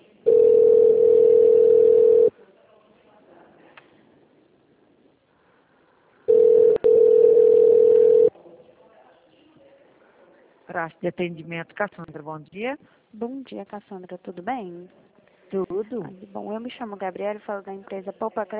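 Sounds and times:
telephone line tones during a call transfer: 0.3s - 2.3s, 6.3s - 8.3s
speech: 10.8s - 18.5s.

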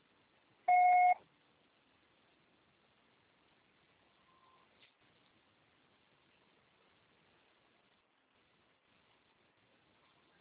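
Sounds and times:
faint hiss: 0.0s - 10.3s
voicemail electronic beep: 0.7s - 1.2s.

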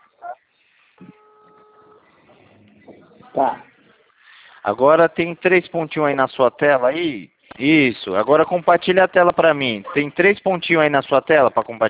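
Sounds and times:
video call ringing tone: 1.0s - 2.1s
speech: 3.4s - 3.7s, 4.6s - 11.8s.

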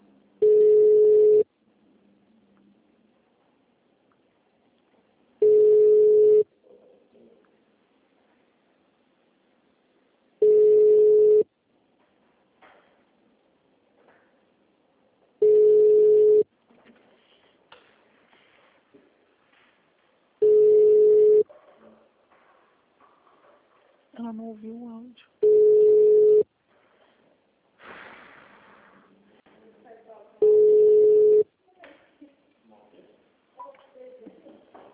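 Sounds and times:
telephone ringback tones: 0.4s - 1.4s, 5.4s - 6.4s, 10.4s - 11.5s, 15.4s - 16.4s, 20.4s - 21.4s, 25.4s - 26.4s, 30.4s - 31.4s
speech: 24.3s - 25.4s.

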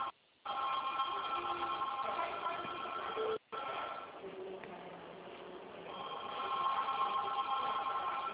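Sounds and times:
telephone ringing with a loud buzzy electronic tone: 0.0s - 3.7s, 5.9s - 8.3s
faint murmur of noise: 1.0s - 8.3s.

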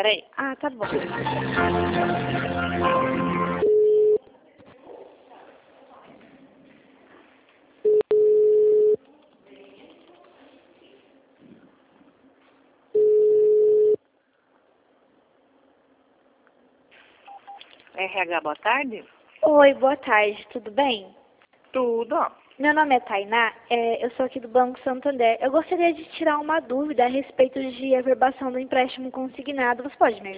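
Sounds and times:
speech: 0.0s - 3.4s, 18.0s - 30.3s
telephone ringing tone: 3.6s - 4.2s, 7.9s - 9.0s, 13.0s - 14.0s.

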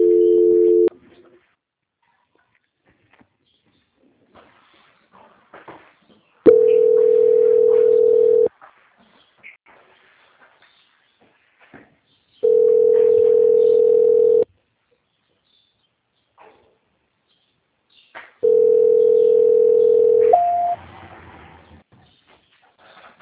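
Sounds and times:
telephone tone during a call transfer: 0.0s - 0.9s, 6.5s - 8.5s, 12.4s - 14.4s, 18.4s - 20.8s.

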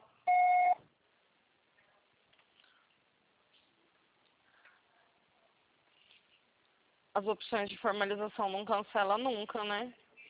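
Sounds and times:
voicemail electronic beep: 0.3s - 0.8s
speech: 7.2s - 10.0s.

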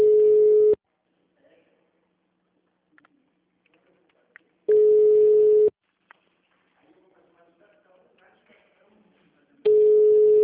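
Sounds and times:
telephone call ringing unanswered: 0.0s - 0.8s, 4.7s - 5.7s, 9.7s - 10.4s.

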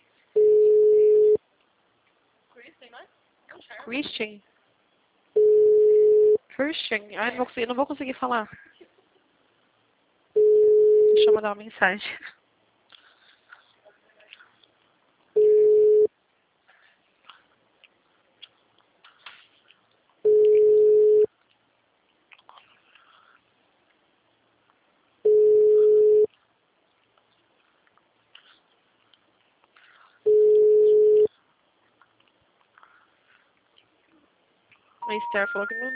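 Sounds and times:
telephone busy signal: 0.4s - 1.4s, 5.4s - 6.4s, 10.4s - 11.4s, 15.4s - 16.1s, 20.3s - 21.3s, 25.3s - 26.3s, 30.3s - 31.3s, 35.0s - 35.9s
speech: 3.8s - 4.5s, 6.6s - 8.7s, 11.2s - 12.2s, 35.3s - 35.9s.

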